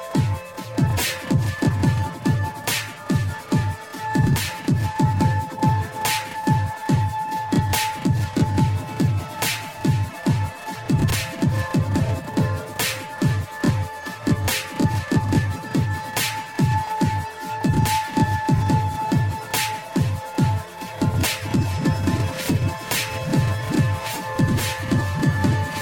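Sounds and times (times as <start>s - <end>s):
ambient drone: 0.0s - 25.7s.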